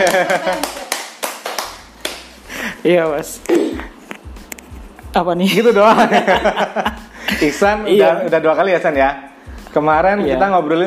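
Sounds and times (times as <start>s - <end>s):
speech: 0.0s - 0.8s, 2.8s - 3.9s, 5.2s - 10.8s
laughter: 0.0s - 0.9s, 5.5s - 8.2s
people clapping hands: 0.0s - 2.4s.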